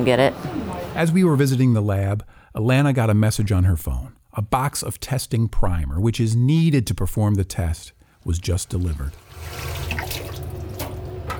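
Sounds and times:
speech: 0.0 - 9.9
running tap water: 8.2 - 11.3.

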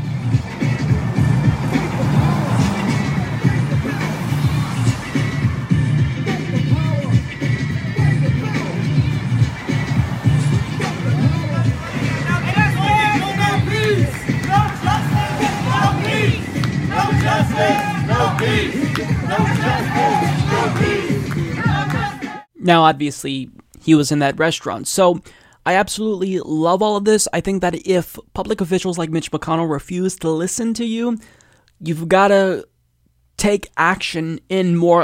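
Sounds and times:
music blasting at a restaurant: 0.0 - 22.5
protesters shouting a slogan: 0.7 - 5.4, 6.2 - 22.5
speech: 22.7 - 32.7, 33.4 - 35.0.

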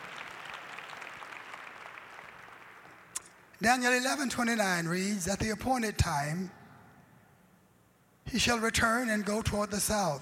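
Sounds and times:
audience applause: 0.0 - 3.0
speech: 3.6 - 6.6, 8.3 - 10.2.

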